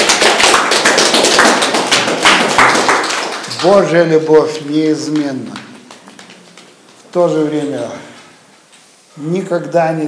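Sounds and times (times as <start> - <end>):
audience applause: 0.0 - 6.7
speech: 3.6 - 5.6, 7.1 - 8.1, 9.2 - 10.0.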